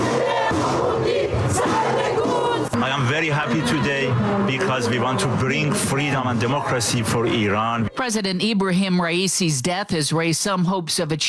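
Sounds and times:
crowd shouting outside the Iranian embassy in Berlin: 0:00.0 - 0:08.2
speech: 0:03.2 - 0:11.2.

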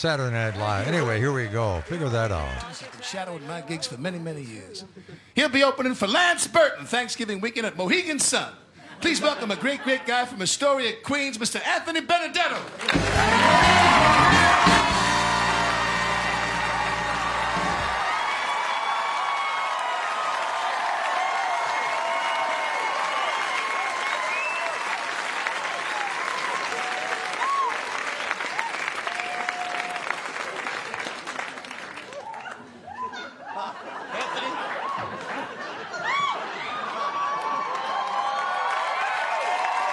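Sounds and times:
speech: 0:00.0 - 0:14.7
laughter: 0:08.8 - 0:10.3, 0:32.9 - 0:37.8
large crowd cheering and applauding: 0:12.7 - 0:33.2, 0:34.2 - 0:39.9
band music: 0:12.9 - 0:18.1
scattered whoops: 0:13.0 - 0:24.9, 0:25.9 - 0:30.2, 0:32.1 - 0:33.4, 0:36.0 - 0:39.9.

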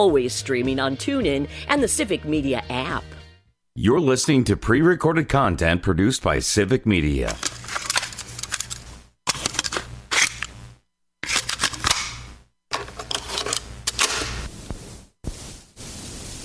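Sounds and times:
speech: 0:00.0 - 0:03.2, 0:03.8 - 0:07.6
cassette tape popped into a tape deck: 0:07.3 - 0:10.6, 0:11.2 - 0:14.4.

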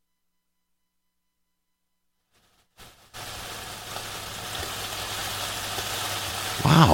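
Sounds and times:
fried chicken sizzling in hot oil: 0:02.4 - 0:06.9.

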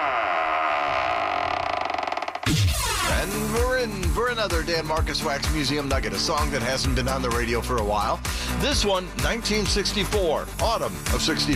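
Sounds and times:
heavy vault door creaking open: 0:00.0 - 0:03.3
speech: 0:02.5 - 0:11.5.

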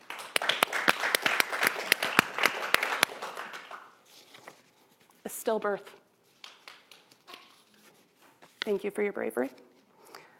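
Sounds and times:
small crowd clapping: 0:00.0 - 0:04.0, 0:06.4 - 0:07.5
speech: 0:05.5 - 0:06.0, 0:08.7 - 0:09.7.

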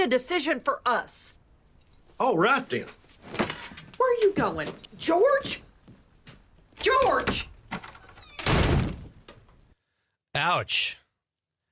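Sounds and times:
speech: 0:00.0 - 0:01.4, 0:02.2 - 0:03.4, 0:04.0 - 0:05.7, 0:06.8 - 0:07.8, 0:10.4 - 0:11.0
door slamming shut in a TV scene: 0:06.8 - 0:09.3.

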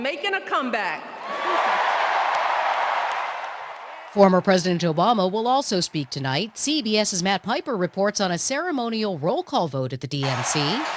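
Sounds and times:
speech: 0:00.0 - 0:01.9, 0:04.1 - 0:10.9
crowd applauding Michelle Obama at the Democratic National Convention in Chicago: 0:01.2 - 0:07.6, 0:10.2 - 0:10.9.

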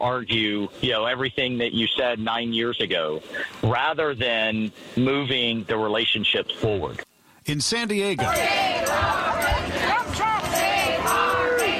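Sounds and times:
speech: 0:00.0 - 0:09.2
crowd shouting at a protest at Cabrillo National Monument San Diego: 0:08.2 - 0:11.7.

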